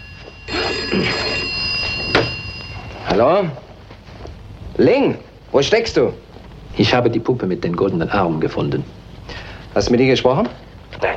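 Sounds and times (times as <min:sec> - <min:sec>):
telephone ringing in an apartment: 0:00.0 - 0:04.2
speech: 0:03.1 - 0:03.7, 0:04.8 - 0:06.2, 0:06.8 - 0:09.0, 0:09.8 - 0:10.6.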